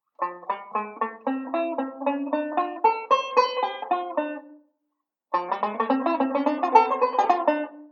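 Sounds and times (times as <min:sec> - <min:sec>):
banjo playing a ii V pattern: 0:00.0 - 0:04.7, 0:05.3 - 0:07.8.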